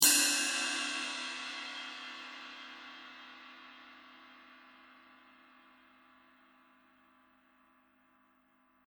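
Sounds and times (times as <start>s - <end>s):
cymbal: 0.0s - 8.0s.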